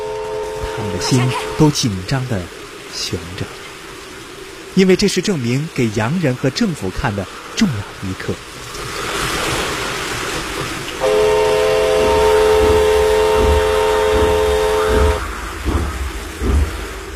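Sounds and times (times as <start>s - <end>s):
train whistle chord: 0.0s - 1.6s, 11.0s - 15.2s
train rolling slowly onto a flooded track bed: 0.0s - 17.1s
water noise on flooded track bed: 0.0s - 17.1s
speech: 0.8s - 3.6s, 4.8s - 8.5s.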